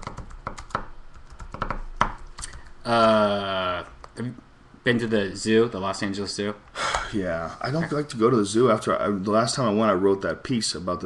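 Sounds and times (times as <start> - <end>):
typing on a computer keyboard to post a link on Twitter: 0.0 - 2.7
speech: 2.8 - 11.0.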